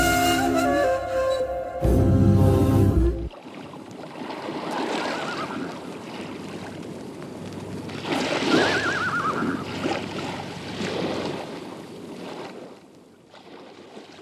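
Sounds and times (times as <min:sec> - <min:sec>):
rolling sea surf washing: 0:00.0 - 0:12.7.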